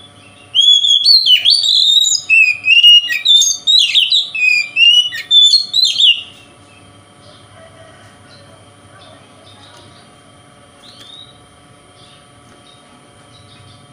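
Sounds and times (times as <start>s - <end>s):
Oriental magpie-robin whistling: 0.0s - 6.4s.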